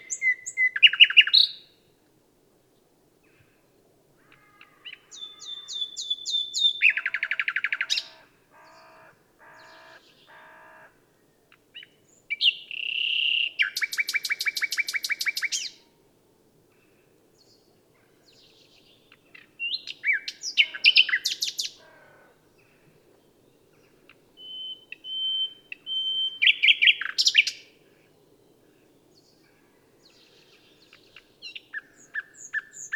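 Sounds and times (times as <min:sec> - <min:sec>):
common nightingale singing: 0:00.0 - 0:01.8, 0:04.8 - 0:10.4, 0:11.7 - 0:15.9, 0:18.3 - 0:21.8, 0:24.1 - 0:27.7, 0:30.0 - 0:32.9.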